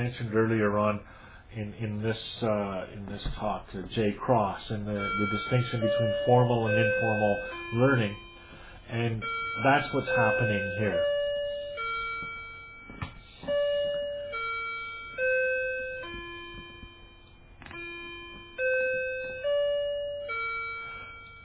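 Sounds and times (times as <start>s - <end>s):
speech: 0.0s - 8.3s, 8.9s - 11.2s
clock chiming: 4.8s - 21.4s.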